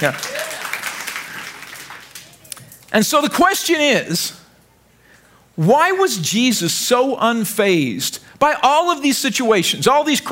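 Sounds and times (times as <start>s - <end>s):
speech: 0.0s - 0.5s, 2.9s - 4.4s, 5.6s - 10.3s
audience clapping: 0.0s - 2.6s.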